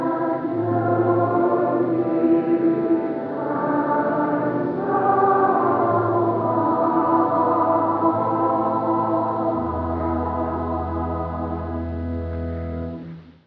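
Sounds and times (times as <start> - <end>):
choir singing at Christmas: 0.0 - 12.0
organ playing at Christmas: 0.0 - 13.0.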